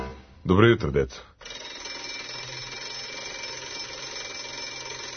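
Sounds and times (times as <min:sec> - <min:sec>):
speech: 0:00.5 - 0:01.3
bell ringing: 0:01.4 - 0:05.1.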